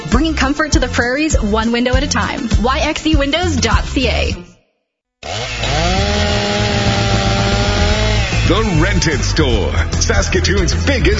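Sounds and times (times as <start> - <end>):
speech: 0.1 - 4.5, 8.5 - 11.1
gas chainsaw starting and running: 5.2 - 9.1.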